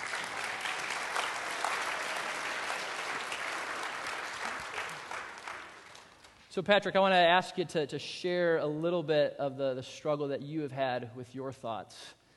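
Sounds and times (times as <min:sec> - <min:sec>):
audience applause: 0:00.0 - 0:06.2
speech: 0:06.6 - 0:12.2.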